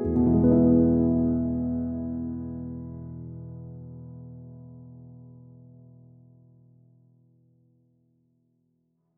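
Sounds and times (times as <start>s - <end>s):
nursery rhyme played on piano: 0.0s - 6.0s.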